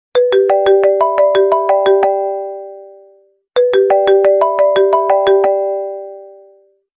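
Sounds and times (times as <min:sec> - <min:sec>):
iPhone ringtone: 0:00.2 - 0:06.8.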